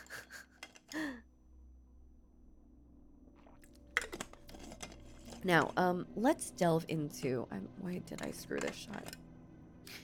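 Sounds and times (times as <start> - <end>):
person drinking water: 3.4 - 4.6
speech: 5.4 - 9.2.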